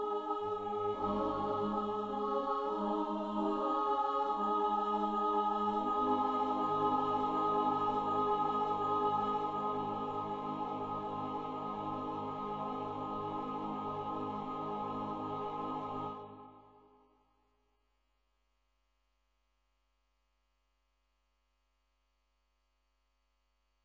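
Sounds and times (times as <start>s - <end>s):
choir singing: 0.0s - 16.8s.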